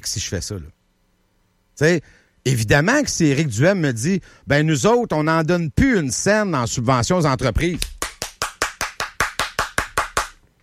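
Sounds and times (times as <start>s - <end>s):
speech: 0.0s - 0.8s, 1.8s - 8.0s
crisp hand claps: 7.4s - 10.4s.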